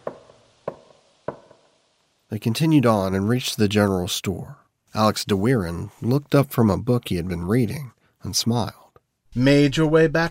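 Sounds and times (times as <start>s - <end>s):
hammering: 0.0s - 1.8s
speech: 2.3s - 10.2s.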